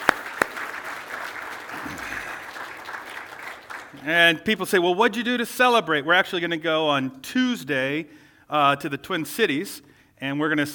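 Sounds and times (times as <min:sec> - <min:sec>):
audience applause: 0:00.0 - 0:04.0
speech: 0:04.0 - 0:10.7.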